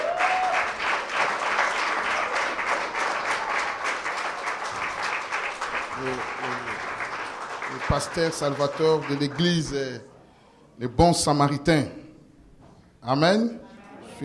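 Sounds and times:
congregation applauding in church: 0.0s - 10.0s
speech: 8.0s - 10.1s, 10.8s - 12.0s, 13.0s - 13.6s.

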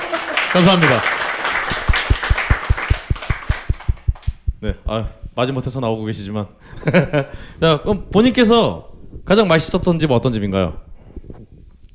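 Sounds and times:
steady rhythmic hand clapping: 0.0s - 5.1s
speech: 0.5s - 1.1s, 4.6s - 10.8s
laughter: 6.7s - 7.4s.

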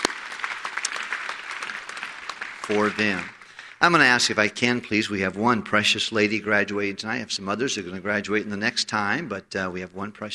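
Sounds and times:
audience at a church gathering applauding: 0.0s - 4.0s
speech: 2.7s - 10.3s.

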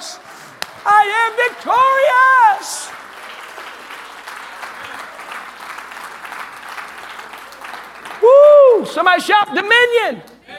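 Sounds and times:
audience clapping hands: 0.0s - 9.5s
speech: 0.8s - 3.0s, 8.2s - 10.3s.

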